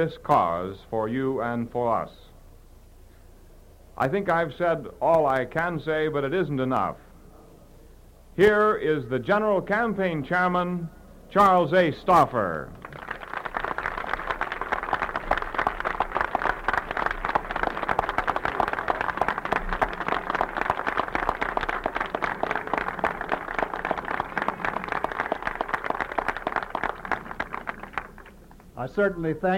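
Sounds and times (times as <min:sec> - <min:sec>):
speech: 0:00.0 - 0:02.3, 0:04.0 - 0:07.0, 0:08.4 - 0:12.9, 0:29.0 - 0:29.5
crowd cheering and applauding: 0:12.8 - 0:28.7.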